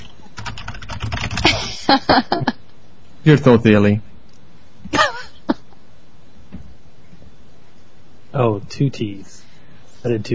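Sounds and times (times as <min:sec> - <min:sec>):
typing a web address on a computer keyboard: 0:00.0 - 0:01.6
speech: 0:01.9 - 0:02.6, 0:03.2 - 0:04.1, 0:08.4 - 0:09.4, 0:10.0 - 0:10.3.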